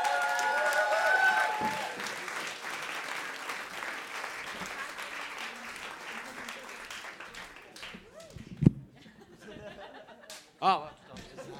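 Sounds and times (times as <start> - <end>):
crowd clapping: 0.0 - 8.5
laughter: 8.9 - 11.5.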